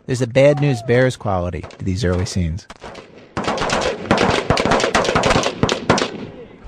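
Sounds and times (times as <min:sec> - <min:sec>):
speech: 0:00.1 - 0:03.1
rifle shots on a shooting range during recruit training: 0:01.6 - 0:06.4.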